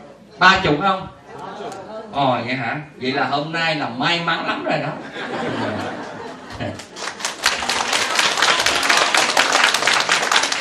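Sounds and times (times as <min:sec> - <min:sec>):
speech: 0:00.4 - 0:05.8
laughter: 0:04.4 - 0:07.0
women in an audience at a temple talk clapping: 0:06.8 - 0:10.6.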